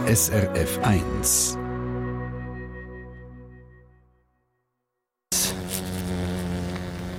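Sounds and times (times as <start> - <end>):
speech: 0.1 - 1.6
large fly buzzing: 5.3 - 7.1.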